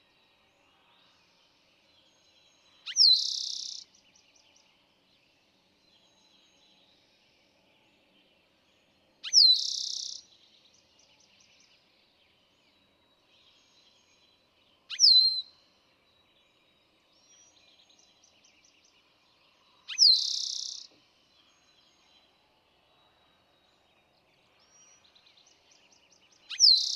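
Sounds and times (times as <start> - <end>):
Eastern towhee song: 2.9 - 3.8, 9.3 - 10.2, 19.9 - 20.9, 25.9 - 26.9.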